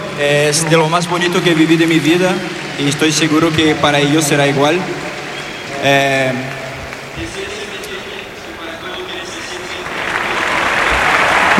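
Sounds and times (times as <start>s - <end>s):
crowd applauding: 0.0s - 11.5s
speech: 0.2s - 5.1s, 5.8s - 6.6s.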